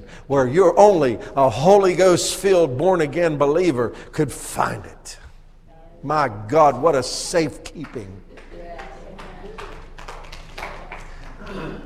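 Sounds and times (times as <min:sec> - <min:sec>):
speech: 0:00.2 - 0:05.2, 0:06.0 - 0:08.2
hand claps: 0:07.6 - 0:11.8
low murmur: 0:07.6 - 0:11.8.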